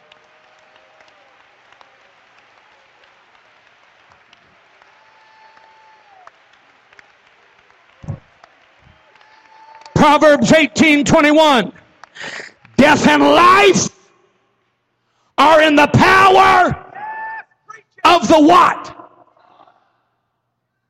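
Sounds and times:
audience clapping hands: 0:00.0 - 0:13.7
speech: 0:10.0 - 0:14.0, 0:15.4 - 0:16.8, 0:18.0 - 0:19.0.

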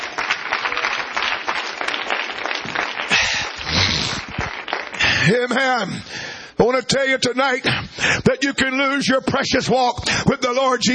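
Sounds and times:
audience clapping hands: 0:00.0 - 0:05.6
speech: 0:05.3 - 0:10.9.

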